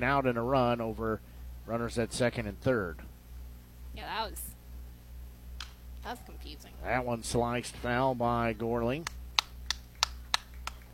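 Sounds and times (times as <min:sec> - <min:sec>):
speech: 0:00.0 - 0:03.1, 0:04.0 - 0:04.6, 0:06.0 - 0:09.2
hand claps: 0:09.0 - 0:10.9.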